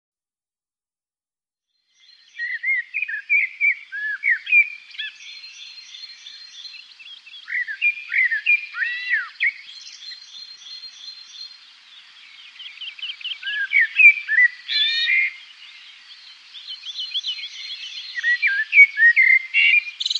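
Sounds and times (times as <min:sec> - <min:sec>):
common blackbird fluty slurred whistles: 0:02.3 - 0:05.3, 0:07.4 - 0:10.3, 0:13.2 - 0:15.4, 0:17.2 - 0:20.1.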